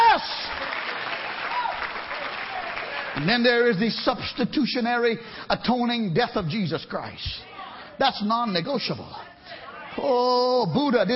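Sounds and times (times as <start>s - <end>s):
audience hand clapping: 0.0s - 4.3s
speech: 3.2s - 11.1s.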